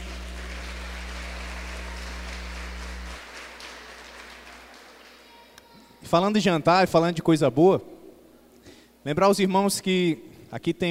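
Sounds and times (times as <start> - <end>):
audience applause: 0.0 - 5.5
speech: 6.1 - 7.9, 9.0 - 10.8.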